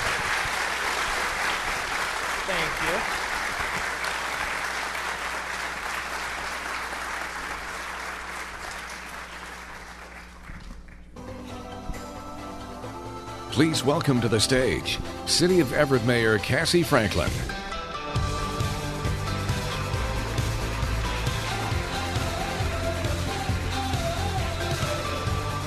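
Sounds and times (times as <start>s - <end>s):
audience applause: 0.0s - 11.1s, 18.2s - 25.6s
speech: 2.5s - 3.2s, 13.6s - 17.6s.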